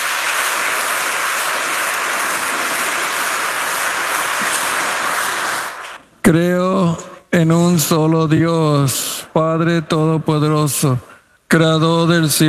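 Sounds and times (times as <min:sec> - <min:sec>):
audience applause: 0:00.0 - 0:06.0
speech: 0:06.3 - 0:06.6, 0:07.4 - 0:12.4.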